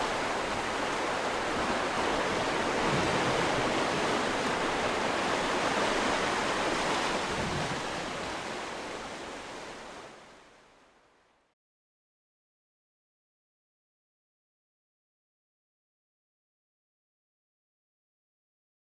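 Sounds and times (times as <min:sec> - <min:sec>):
water in nature: 0:00.0 - 0:11.6.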